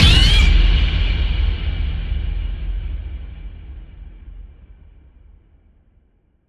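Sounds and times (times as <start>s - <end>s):
boom: 0.0s - 2.6s.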